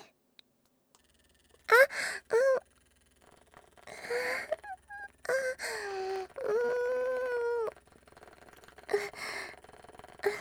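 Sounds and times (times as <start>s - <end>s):
woman with a beautiful voice moaning: 1.7s - 2.6s, 3.8s - 10.3s.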